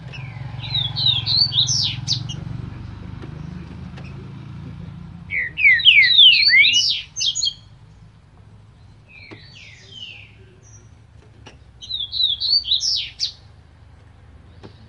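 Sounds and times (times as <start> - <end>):
green-winged saltator singing slurred whistles: 0.2 - 2.4, 5.3 - 7.6, 11.8 - 13.4.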